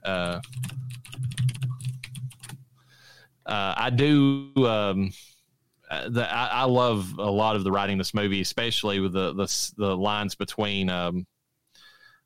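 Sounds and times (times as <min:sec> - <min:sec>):
speech: 0:00.0 - 0:01.2, 0:03.5 - 0:05.3, 0:05.9 - 0:11.3
quick typing on a computer keyboard while searching IMDb: 0:00.1 - 0:02.6.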